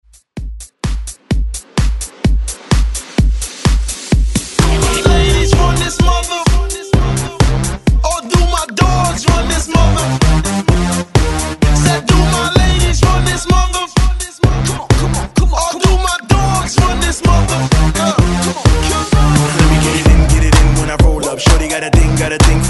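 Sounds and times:
hype beat: 0:00.4 - 0:22.6.

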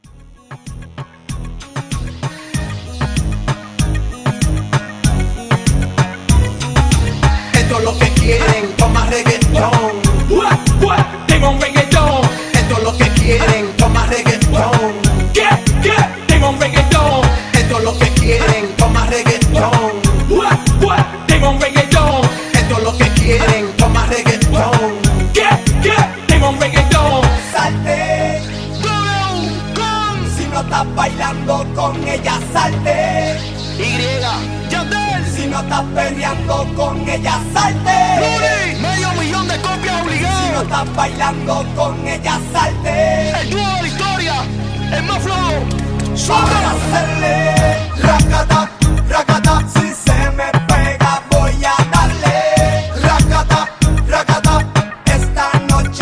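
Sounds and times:
reggaeton beat at 96 BPM: 0:00.0 - 0:44.4, 0:45.2 - 0:56.0.

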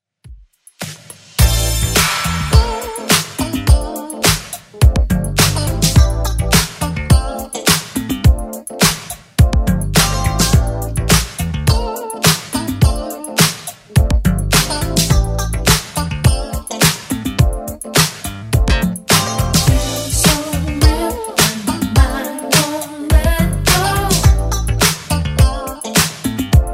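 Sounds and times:
80s style track at 105 bpm: 0:00.8 - 0:26.7.

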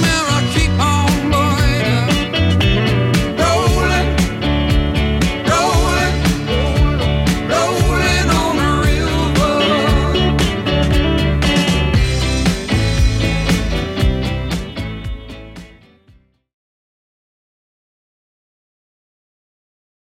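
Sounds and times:
70s style beat: 0:00.0 - 0:15.9.

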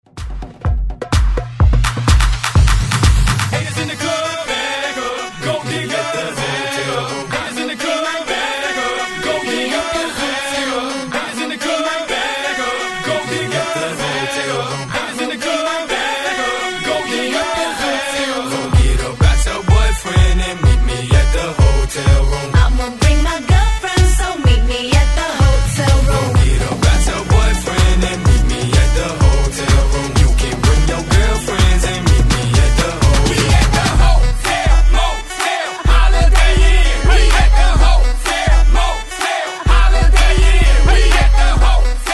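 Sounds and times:
party breaks music: 0:00.0 - 0:42.1.

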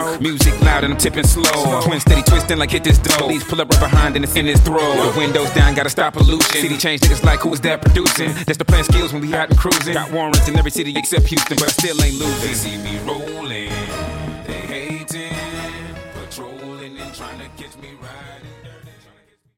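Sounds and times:
record scratching in outro: 0:00.4 - 0:12.3.

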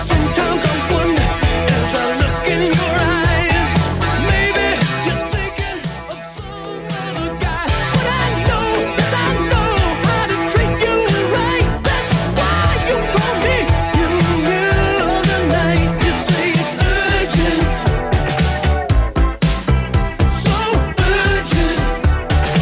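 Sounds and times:
80s drum beat at 115 bpm: 0:00.0 - 0:22.5.

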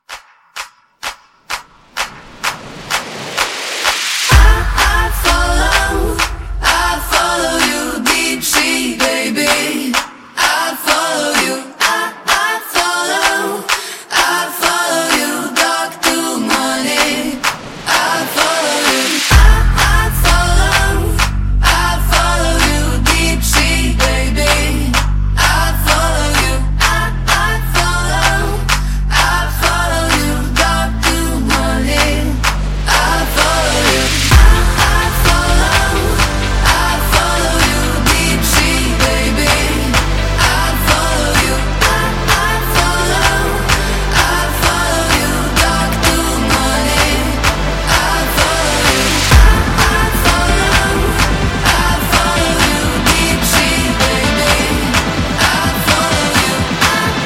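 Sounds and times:
a cappella hand claps party starter: 0:00.0 - 0:04.1, 0:04.8 - 0:17.6, 0:18.4 - 0:57.2.

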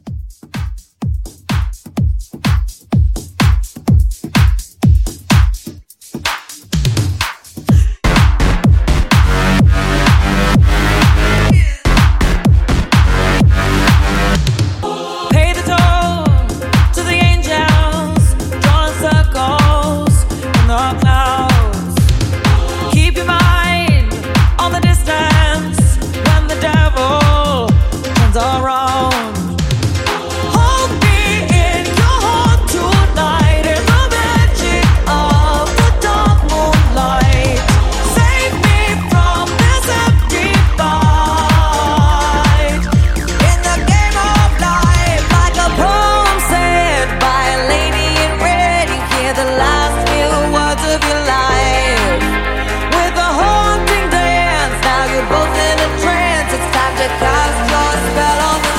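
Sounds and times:
club mixshow at 126 bpm: 0:00.0 - 0:58.7.

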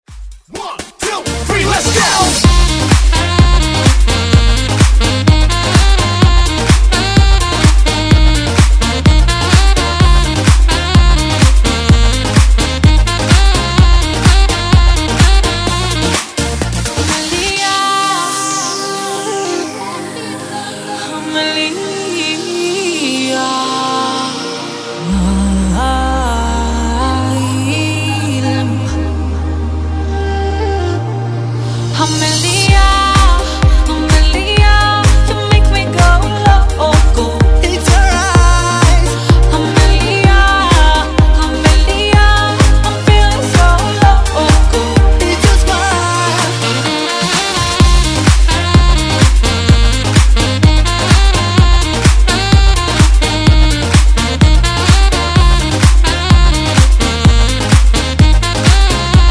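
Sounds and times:
Latin dance music: 0:00.0 - 0:59.2.

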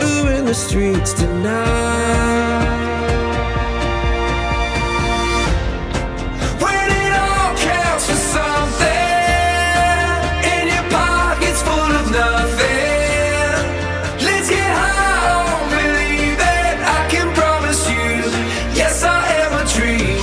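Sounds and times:
hype music intro at 126 BPM: 0:00.0 - 0:20.2.

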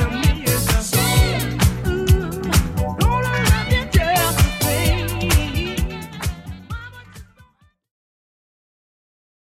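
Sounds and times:
70s drum loop at 130 bpm: 0:00.0 - 0:07.3.

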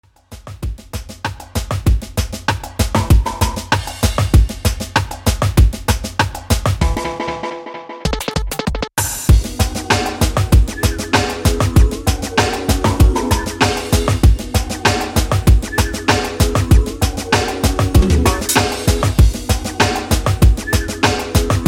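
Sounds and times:
1980s-style reggae music: 0:01.0 - 0:21.6.

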